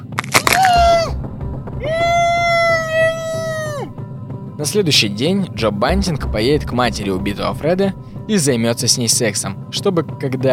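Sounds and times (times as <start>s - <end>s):
finger bones crunching: 0.0s - 1.0s
muffled scream through a gag: 0.4s - 1.2s, 1.8s - 3.9s
speech: 4.6s - 10.5s.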